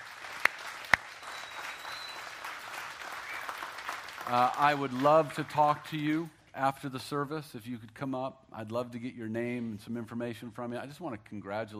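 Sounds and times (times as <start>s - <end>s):
audience applause: 0.0s - 5.9s
speech: 4.3s - 11.7s.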